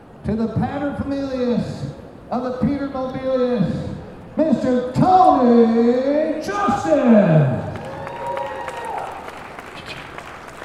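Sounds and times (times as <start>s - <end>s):
speech: 0.2s - 7.7s
audience applause: 7.6s - 10.6s.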